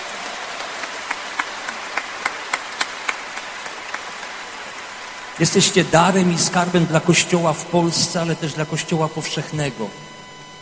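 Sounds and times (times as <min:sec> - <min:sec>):
audience applause: 0:00.0 - 0:08.6
speech: 0:05.4 - 0:10.1.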